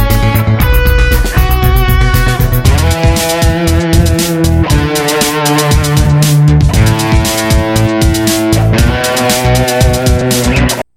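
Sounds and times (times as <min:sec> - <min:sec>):
rock guitar: 0:00.0 - 0:10.9.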